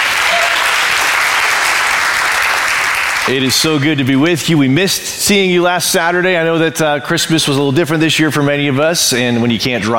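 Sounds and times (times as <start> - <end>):
crowd clapping: 0.0 - 3.8
speech: 3.2 - 9.9.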